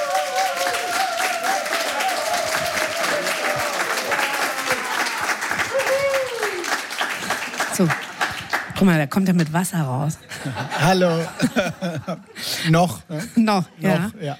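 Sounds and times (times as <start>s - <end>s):
audience applause for arriving guest: 0.0s - 9.0s
speech: 7.8s - 8.1s, 8.8s - 14.3s
laughter: 10.2s - 12.4s.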